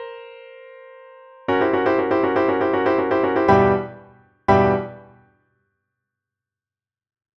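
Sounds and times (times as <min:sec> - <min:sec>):
chords: 0:01.5 - 0:05.2.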